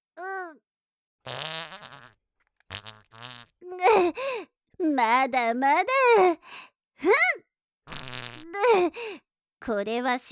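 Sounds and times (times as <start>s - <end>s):
farting: 1.2s - 3.6s, 7.9s - 8.6s
speech: 4.0s - 10.3s.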